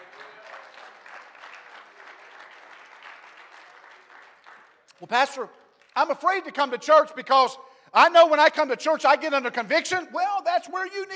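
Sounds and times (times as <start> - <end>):
audience clapping hands in praise: 0.0 - 6.4
speech: 5.0 - 11.1.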